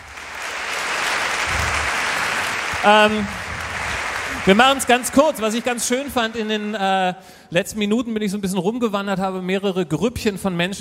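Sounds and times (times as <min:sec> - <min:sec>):
audience applause: 0:00.0 - 0:07.1
speech: 0:02.8 - 0:03.4, 0:04.4 - 0:10.7.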